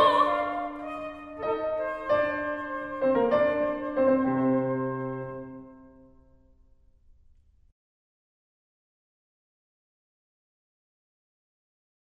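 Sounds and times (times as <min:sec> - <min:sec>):
soprano singing in Arabic: 0:00.0 - 0:05.5
flute: 0:00.0 - 0:06.1
piano: 0:00.0 - 0:07.5.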